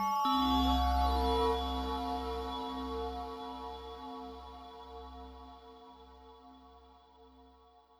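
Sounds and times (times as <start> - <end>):
heavenly ambient music: 0.0 - 5.7.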